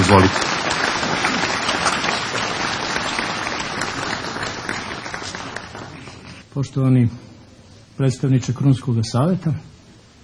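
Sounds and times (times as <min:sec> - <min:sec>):
audience applause welcoming a speaker: 0:00.0 - 0:06.4
speech: 0:00.1 - 0:00.6, 0:06.6 - 0:07.2, 0:08.0 - 0:09.7.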